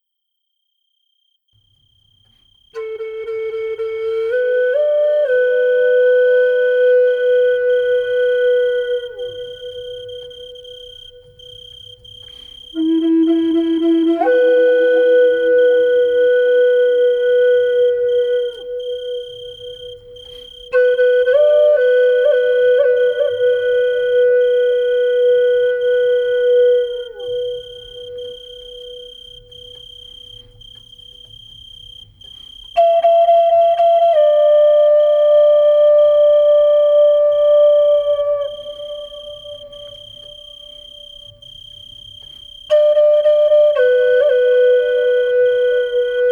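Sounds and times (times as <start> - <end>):
cricket chirping: 0.6 - 46.2.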